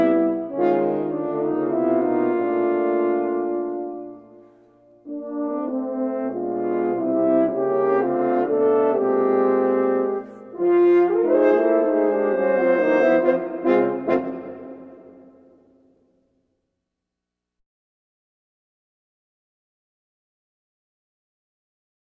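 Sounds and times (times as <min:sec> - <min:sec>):
horn playing C note: 0:00.0 - 0:15.8.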